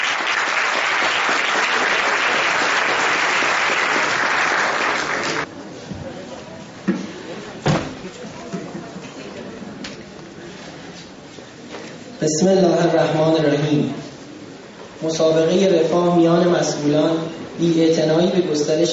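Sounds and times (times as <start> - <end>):
audience applause after a theatre performance: 0.0 - 5.5
speech: 12.2 - 14.0, 15.0 - 18.9.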